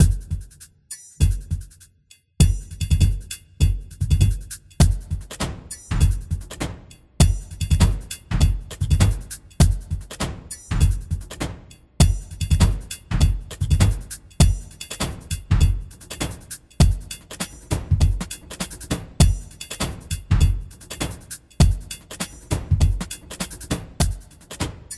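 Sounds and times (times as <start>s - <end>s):
percussion loop: 0.0s - 24.9s.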